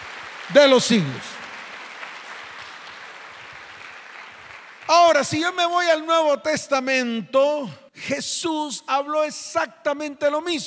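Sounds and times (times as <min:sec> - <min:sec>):
audience applause: 0:00.0 - 0:05.2
speech: 0:00.5 - 0:01.3, 0:05.2 - 0:10.6.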